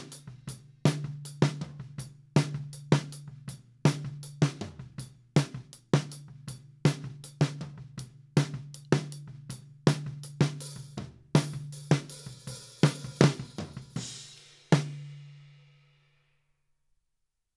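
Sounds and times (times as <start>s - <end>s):
snare drum top: 0.0s - 3.1s, 3.9s - 6.3s, 9.9s - 15.4s.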